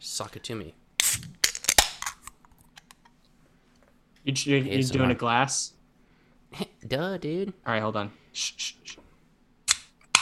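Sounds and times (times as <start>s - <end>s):
speech: 0.2s - 1.4s, 4.2s - 5.8s, 6.5s - 9.0s
beer can cracking open: 1.0s - 2.9s.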